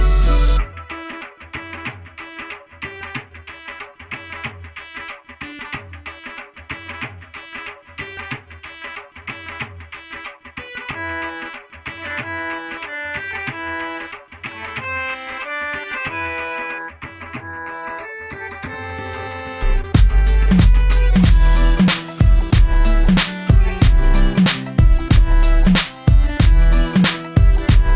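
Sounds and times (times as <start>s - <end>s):
Desi ringtone: 0.0s - 2.5s, 10.9s - 27.9s.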